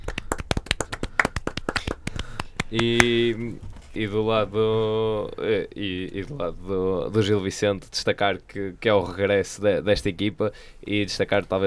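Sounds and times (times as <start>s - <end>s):
light hand clapping: 0.0s - 3.4s
speech: 2.7s - 11.6s.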